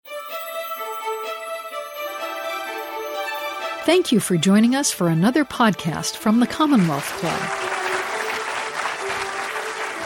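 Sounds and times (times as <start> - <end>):
speech: 3.9 - 7.8
polite audience applause: 6.3 - 10.0.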